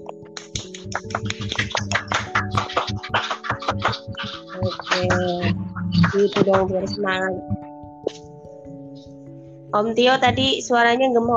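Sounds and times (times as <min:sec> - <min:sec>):
round of applause with sharp bright hand claps: 0:00.0 - 0:07.0
speech: 0:00.9 - 0:02.0, 0:06.2 - 0:07.6, 0:09.7 - 0:11.3.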